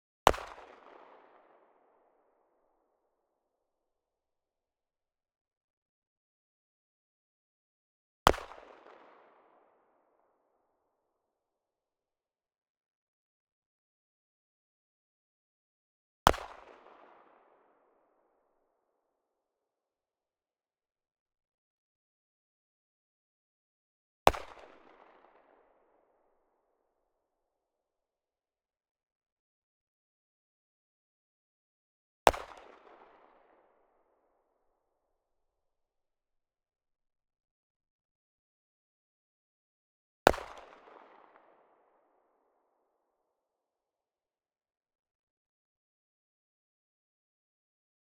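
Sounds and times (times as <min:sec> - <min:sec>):
Dan Wesson 445 revolver firing: 0:00.2 - 0:01.4, 0:08.3 - 0:09.4, 0:16.3 - 0:17.3, 0:24.3 - 0:25.5, 0:32.3 - 0:33.6, 0:40.3 - 0:41.6.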